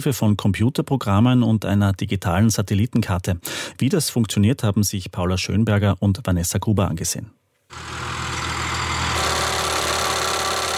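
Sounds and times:
speech: 0.0 - 8.1
drill on rear of a tractor boring into soil: 7.7 - 10.7.

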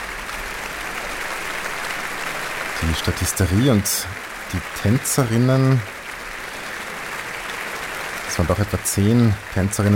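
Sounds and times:
opera audience applause for the extras and dancers: 0.0 - 9.9
speech: 2.8 - 6.0, 8.4 - 9.9.

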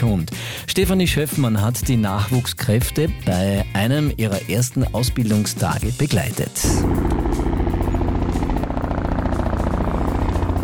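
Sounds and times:
speech: 0.0 - 7.5
helicopter engine droning: 6.6 - 10.6.

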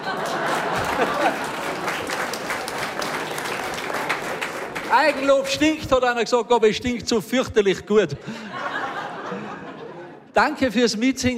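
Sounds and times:
laughter: 0.0 - 2.8, 8.0 - 10.3
audience clapping: 0.0 - 5.8
speech: 5.0 - 8.6, 10.4 - 11.3.

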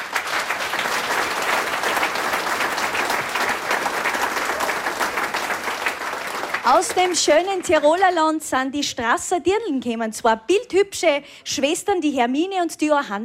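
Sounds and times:
audience applause: 0.0 - 8.2
speech: 6.6 - 13.2.

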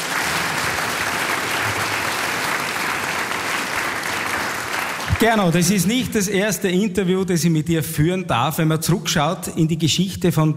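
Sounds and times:
audience applause: 0.0 - 5.8
speech: 5.2 - 10.5.

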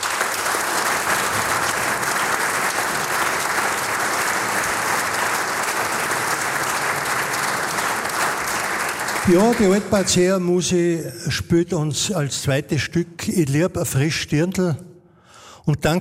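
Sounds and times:
audience applause: 0.0 - 10.5
speech: 9.3 - 14.9, 15.7 - 16.0.

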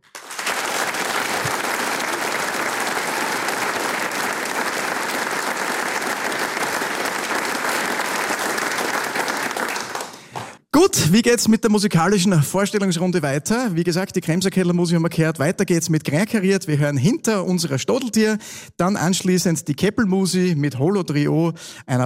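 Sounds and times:
audience clapping in the Arbeiterheimsaal hall in Vonsdorf: 0.0 - 10.7
speech: 10.9 - 22.0.

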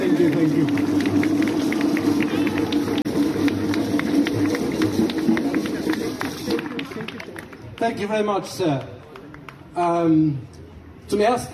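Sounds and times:
audience applause: 0.0 - 8.0
speech: 0.4 - 1.0, 7.9 - 8.9, 9.8 - 11.5.

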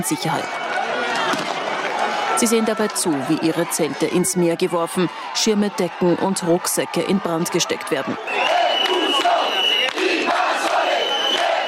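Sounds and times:
speech: 0.0 - 0.6, 2.4 - 9.0
angry crowd of demonstrators shouting: 0.4 - 11.6.

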